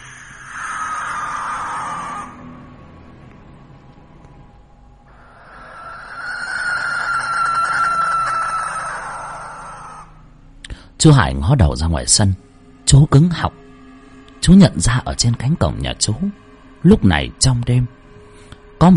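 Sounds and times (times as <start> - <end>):
strange bird screeching call: 0.0 - 2.6, 5.1 - 10.3
speech: 11.0 - 13.7, 14.4 - 18.0.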